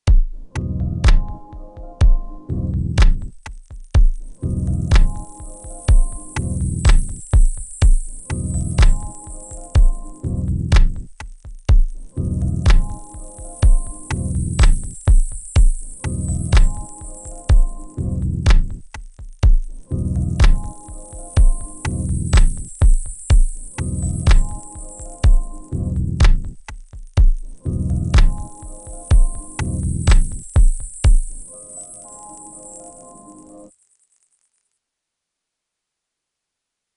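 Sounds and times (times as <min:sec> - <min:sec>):
music loop: 0:00.0 - 0:33.7.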